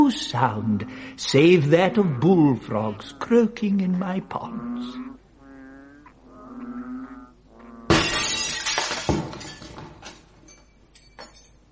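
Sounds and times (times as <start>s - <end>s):
speech: 0.1s - 5.2s
stone breaking a glass window pane: 7.9s - 11.5s.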